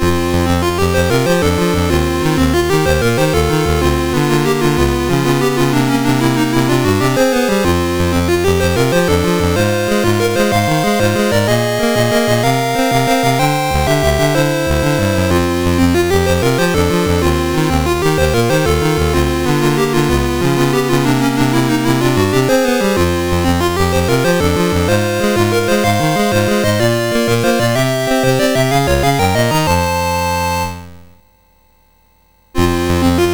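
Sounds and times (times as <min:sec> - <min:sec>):
MOS6581R3 SID chip sound: 0:00.0 - 0:31.2, 0:32.6 - 0:33.3.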